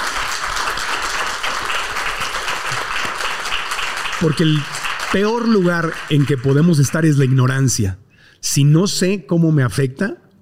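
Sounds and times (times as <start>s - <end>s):
audience applause for the doctor: 0.0s - 7.6s
speech: 4.2s - 10.2s.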